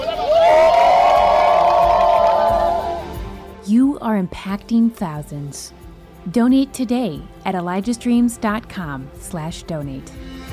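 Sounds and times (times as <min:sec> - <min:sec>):
crowd cheering at borehole water celebration: 0:00.0 - 0:03.3
speech: 0:04.1 - 0:10.3.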